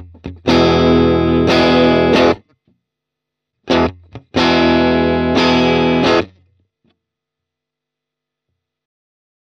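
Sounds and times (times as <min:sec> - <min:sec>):
amp simulated guitar: 0:00.0 - 0:02.6, 0:03.6 - 0:06.6.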